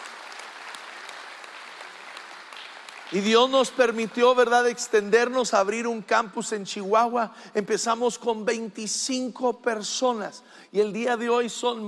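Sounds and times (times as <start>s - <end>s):
audience applause: 0.0s - 4.6s
speech: 3.1s - 11.8s.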